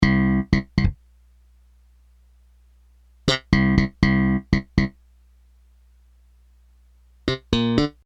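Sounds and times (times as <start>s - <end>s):
bass: 0.0s - 1.1s, 3.2s - 5.0s, 7.2s - 8.0s.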